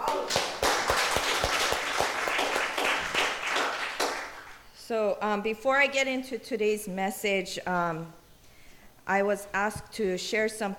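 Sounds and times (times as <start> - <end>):
audience applause: 0.0 - 4.6
speech: 4.9 - 8.2, 9.1 - 10.7.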